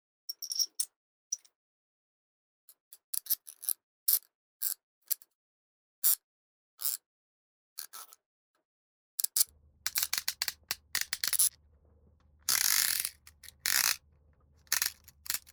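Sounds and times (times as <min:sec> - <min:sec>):
tools: 0:09.9 - 0:11.6, 0:12.5 - 0:14.0, 0:14.6 - 0:15.5.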